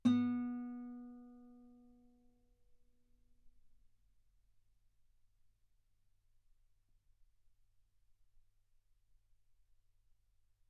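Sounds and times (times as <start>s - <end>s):
guitar note B3: 0.0s - 1.4s.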